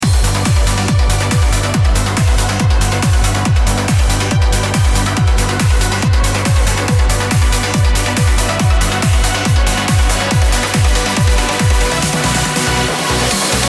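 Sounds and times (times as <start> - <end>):
uplifting DJ mix transition: 0.0 - 13.6.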